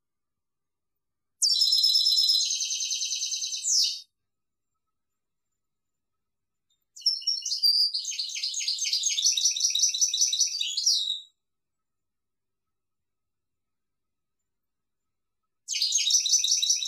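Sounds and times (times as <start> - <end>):
European goldfinch song: 1.4 - 11.9, 14.4 - 16.8.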